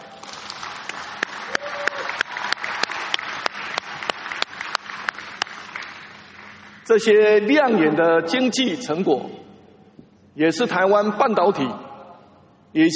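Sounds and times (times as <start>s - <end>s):
audience applause: 0.0s - 6.9s
sharp individual claps: 0.2s - 6.9s
speech: 6.9s - 9.4s, 10.4s - 11.8s, 12.7s - 12.9s.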